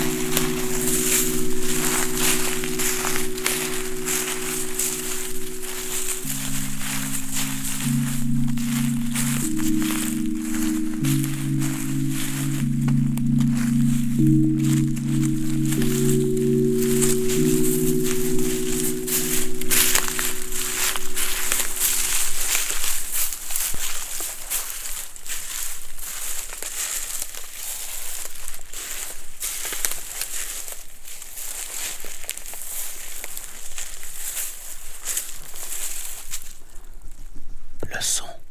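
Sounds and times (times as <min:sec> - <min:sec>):
low droning hum: 0:00.0 - 0:23.1
footsteps on dead leaves and dry twigs: 0:00.0 - 0:36.8.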